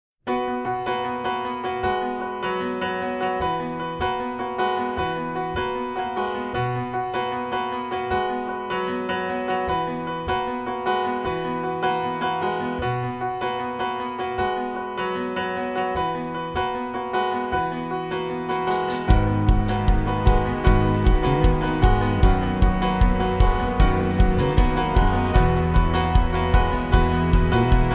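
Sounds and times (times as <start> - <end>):
musical accompaniment: 0.3 - 27.9.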